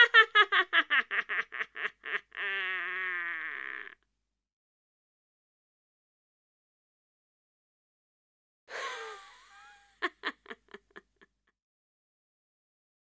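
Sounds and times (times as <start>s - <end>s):
laughing: 0.0s - 4.0s, 8.7s - 11.2s.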